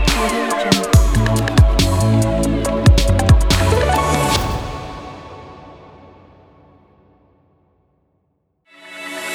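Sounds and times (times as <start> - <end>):
logo ident: 0.1 - 6.6.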